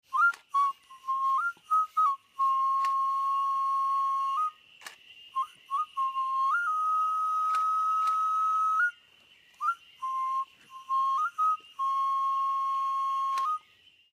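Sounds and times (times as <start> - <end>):
whistle: 0.0 - 14.1.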